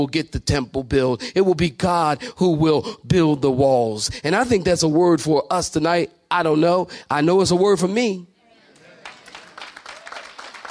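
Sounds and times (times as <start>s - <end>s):
speech: 0.0s - 8.3s
few people clapping: 8.7s - 10.6s.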